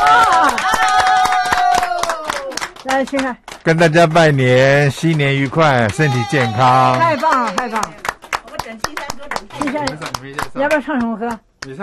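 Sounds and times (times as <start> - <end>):
excited voices: 0.0 - 2.6, 3.7 - 8.0
clapping welcoming a special guest at a New Year show: 0.0 - 11.8
speech: 3.0 - 8.0, 8.7 - 11.8.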